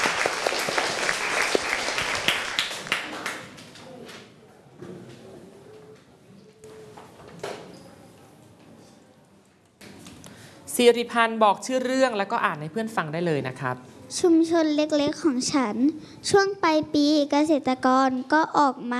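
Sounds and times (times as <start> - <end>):
classroom applause: 0.0 - 3.9
speech: 10.8 - 18.9.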